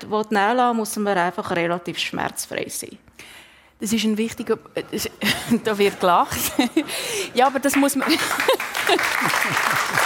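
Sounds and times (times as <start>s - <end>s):
speech: 0.0s - 10.0s
laughter: 6.3s - 7.4s, 8.0s - 10.0s
audience clapping: 7.3s - 10.0s.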